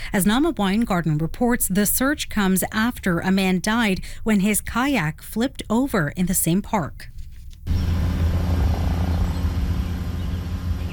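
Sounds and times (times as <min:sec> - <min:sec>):
speech: 0:00.1 - 0:07.1, 0:07.7 - 0:08.1
OPP helicopter circling above the Binbrook Conservation Area in Hamilton: 0:07.7 - 0:10.9.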